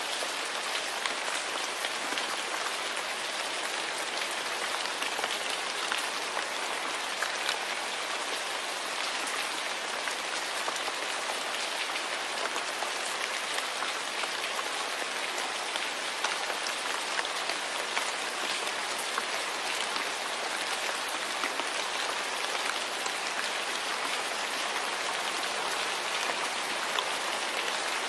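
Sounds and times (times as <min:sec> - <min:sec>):
rain: 0:00.0 - 0:28.0.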